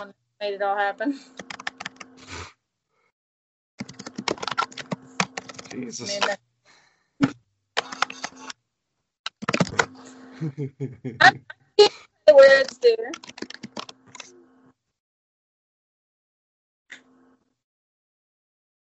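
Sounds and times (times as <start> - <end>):
speech: 0.0 - 1.5, 5.7 - 6.4, 10.4 - 11.6, 12.4 - 13.6
typing on a keyboard: 1.4 - 2.2, 3.8 - 6.3, 7.8 - 8.5, 9.3 - 9.9, 12.6 - 14.3
laughter: 9.7 - 11.5.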